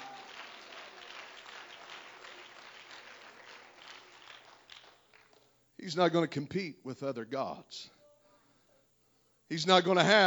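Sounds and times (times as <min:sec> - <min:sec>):
audience clapping hands: 0:00.0 - 0:05.6
speech: 0:05.8 - 0:08.0, 0:09.5 - 0:10.2.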